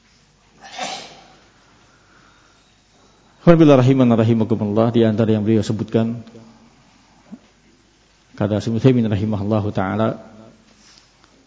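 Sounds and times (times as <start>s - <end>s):
sneeze: 0.6s - 1.4s
speech: 3.4s - 6.4s, 8.4s - 10.3s.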